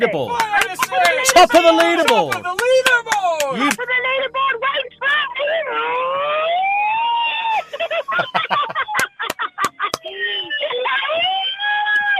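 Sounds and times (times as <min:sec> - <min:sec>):
speech: 0:00.0 - 0:04.6
laughter: 0:00.3 - 0:04.2, 0:07.4 - 0:11.8
megaphone siren wailing and yelping: 0:04.0 - 0:09.0, 0:10.2 - 0:12.1.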